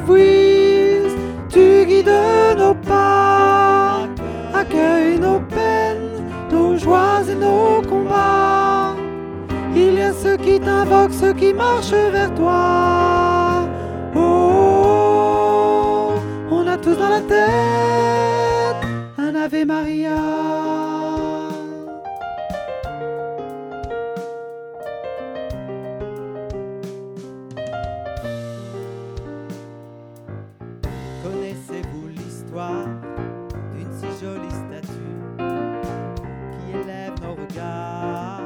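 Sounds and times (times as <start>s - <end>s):
soprano singing a refrain as lead voice: 0.0s - 9.0s, 9.7s - 22.0s.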